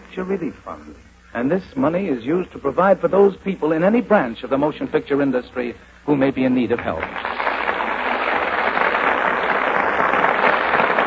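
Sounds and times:
speech: 0.2s - 7.4s
audience applause: 6.9s - 11.0s.

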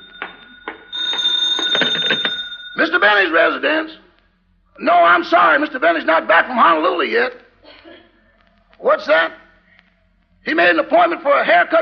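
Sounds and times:
telephone ringing in a home: 0.0s - 3.8s
speech: 2.8s - 4.0s, 4.8s - 7.4s, 8.8s - 9.4s, 10.4s - 11.8s.

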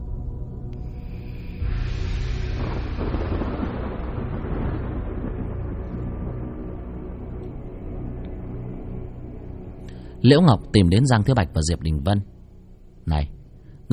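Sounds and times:
rough crackling wash: 0.0s - 13.9s
thunderous rumbling of meteor shower impacts: 1.6s - 9.8s
speech: 10.2s - 12.4s, 13.0s - 13.9s.

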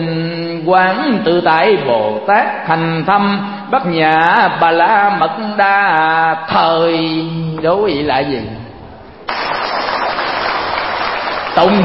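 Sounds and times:
speech: 0.0s - 8.6s, 11.6s - 11.8s
crowd hand slapping imitating swatting mosquitoes: 9.3s - 11.8s.

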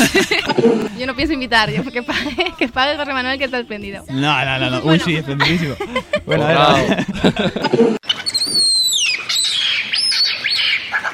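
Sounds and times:
laughter: 0.0s - 3.0s, 4.2s - 8.0s
speech: 0.1s - 8.7s
capuchin monkey call: 8.0s - 11.1s.

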